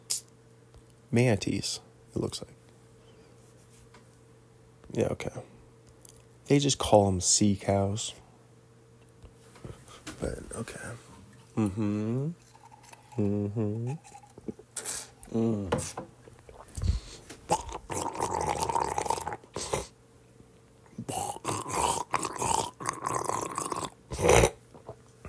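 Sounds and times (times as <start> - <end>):
speech: 1.1 - 2.6, 4.9 - 5.5, 6.5 - 8.2, 10.2 - 12.4, 13.2 - 14.2, 15.3 - 16.1
person gargling: 11.6 - 12.4, 13.1 - 14.6, 15.3 - 15.7, 17.5 - 19.9, 21.0 - 24.6.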